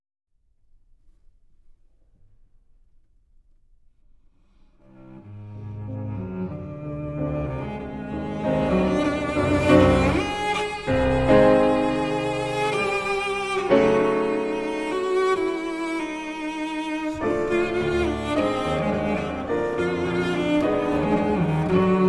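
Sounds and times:
cello sonata allegro movement: 0:04.4 - 0:22.0.

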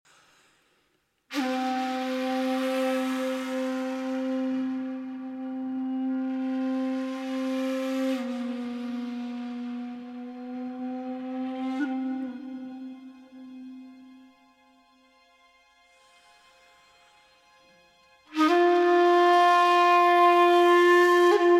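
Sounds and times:
shakuhachi: 0:01.3 - 0:14.6, 0:18.3 - 0:21.5.

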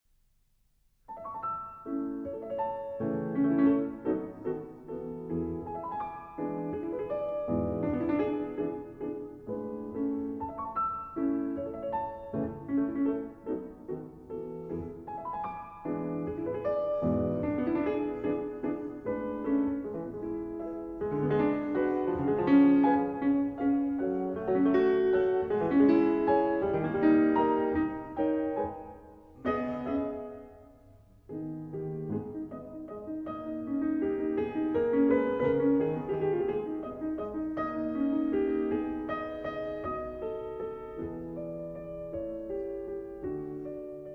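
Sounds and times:
piano sonata scherzo: 0:00.5 - 0:44.1.

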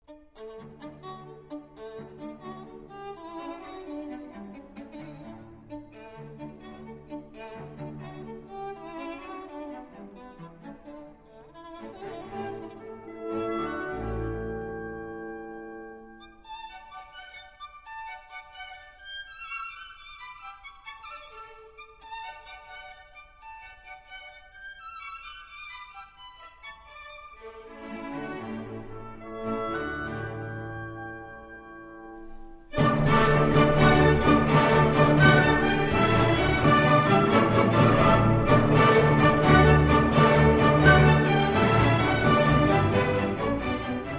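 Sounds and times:
violin concerto in D rondo: 0:00.0 - 0:44.1.

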